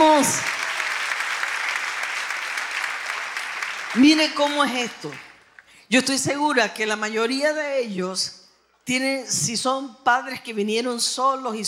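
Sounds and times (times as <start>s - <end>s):
crowd applause: 0.0s - 5.5s
speech: 0.2s - 0.5s, 3.9s - 5.3s, 5.9s - 11.6s.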